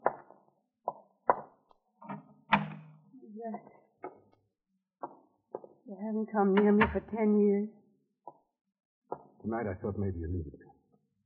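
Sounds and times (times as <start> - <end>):
French door being opened: 2.0 - 3.0, 6.5 - 7.2
speech: 3.4 - 3.8, 6.1 - 7.8, 9.5 - 10.6.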